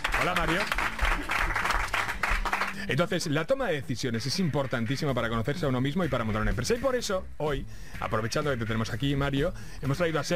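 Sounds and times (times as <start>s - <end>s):
audience applause: 0.0s - 2.8s
speech: 0.2s - 1.3s, 2.8s - 10.3s.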